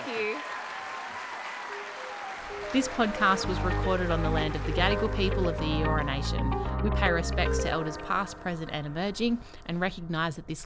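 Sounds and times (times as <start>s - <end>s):
audience applause: 0.0s - 3.5s
speech: 2.7s - 10.6s.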